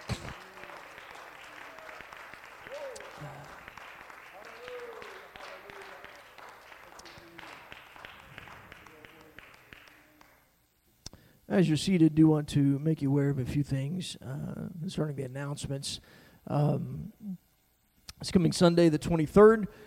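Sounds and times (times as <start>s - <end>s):
audience applauding: 0.0s - 10.5s
speech: 11.5s - 17.4s, 18.2s - 19.8s.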